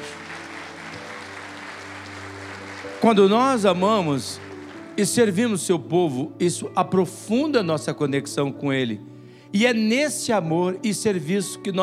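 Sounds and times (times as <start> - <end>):
audience applauding: 0.0 - 5.4
speech: 3.0 - 11.8.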